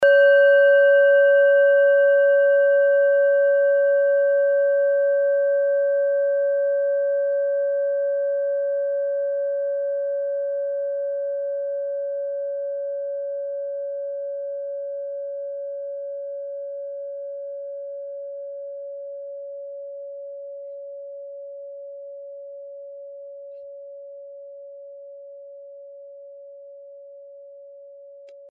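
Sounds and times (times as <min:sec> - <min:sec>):
small singing bowl: 0:00.0 - 0:28.5.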